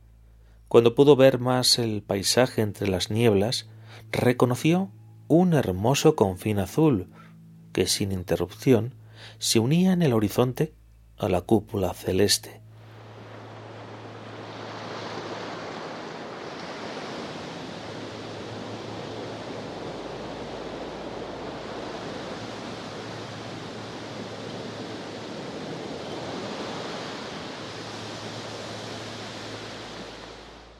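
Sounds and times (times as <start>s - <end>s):
speech: 0.7s - 12.6s
sea waves rolling in: 12.6s - 30.7s.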